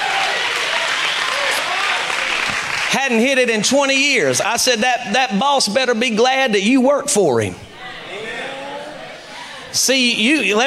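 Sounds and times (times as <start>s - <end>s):
audience hand clapping: 0.0s - 3.2s
speech: 2.9s - 7.6s, 9.8s - 10.6s.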